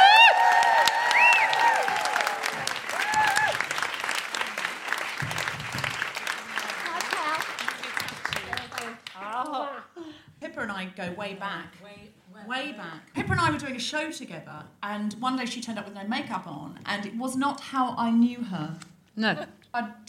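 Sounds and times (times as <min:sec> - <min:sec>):
high whoops and voices: 0:00.0 - 0:03.6
studio audience applause welcoming a comedian: 0:00.0 - 0:09.2
speech: 0:10.8 - 0:11.8, 0:12.4 - 0:20.0.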